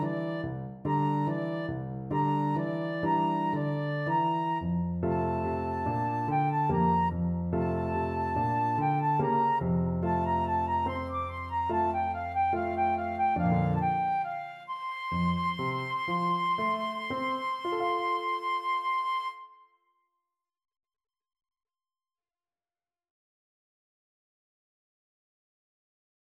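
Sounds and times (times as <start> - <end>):
flute and saxophone duet: 0.0 - 19.5.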